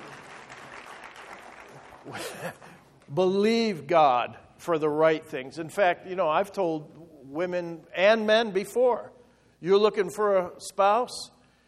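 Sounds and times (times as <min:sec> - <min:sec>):
church congregation applauding: 0:00.0 - 0:03.2
speech: 0:02.0 - 0:11.4.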